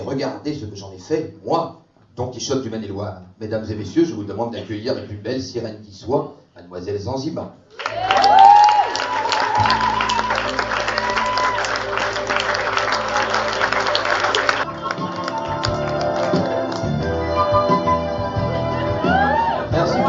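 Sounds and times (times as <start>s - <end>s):
speech: 0.1s - 8.4s, 9.6s - 10.6s
high whoop: 7.8s - 12.2s, 18.9s - 19.8s
crowd applauding and cheering: 7.8s - 20.0s.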